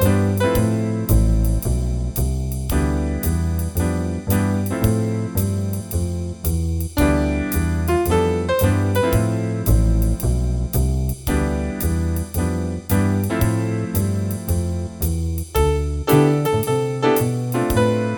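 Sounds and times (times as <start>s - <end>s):
jazz improvisation in D minor with jazz rhythms: 0.0s - 18.1s.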